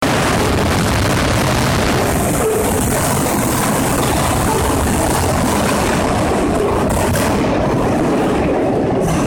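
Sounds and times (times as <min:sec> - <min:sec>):
train passing rhythmically: 0:00.0 - 0:09.2.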